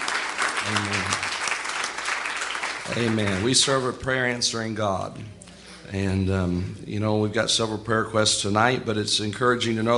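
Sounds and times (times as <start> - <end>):
audience hand clapping: 0.0 - 4.2
speech: 0.7 - 1.3, 2.9 - 9.9.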